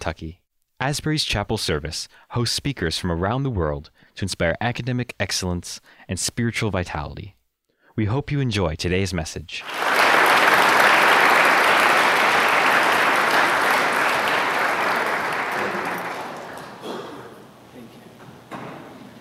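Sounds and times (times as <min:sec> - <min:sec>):
speech: 0:00.0 - 0:07.4, 0:08.0 - 0:10.0
audience applause: 0:09.6 - 0:17.6.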